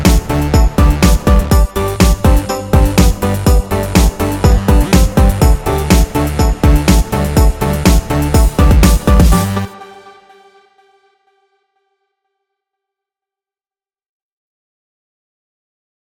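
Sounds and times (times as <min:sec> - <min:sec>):
celebratory music: 0:00.0 - 0:11.4.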